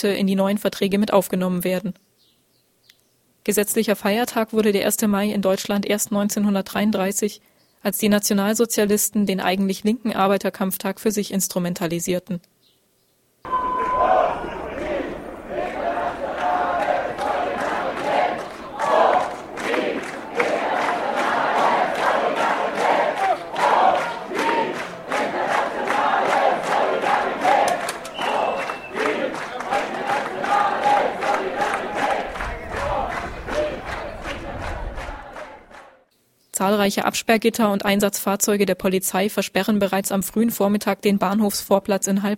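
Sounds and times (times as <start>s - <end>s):
speech: 0.0s - 2.1s, 3.4s - 12.6s, 36.8s - 42.3s
May Day demonstration crowd roar of voices: 13.5s - 35.8s
shouts and chants: 13.5s - 36.0s.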